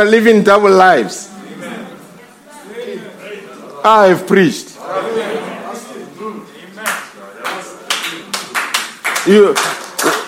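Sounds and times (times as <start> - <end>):
speech: 0.0 - 1.3, 3.8 - 5.5, 9.2 - 9.8
audience clapping hands: 6.8 - 10.2.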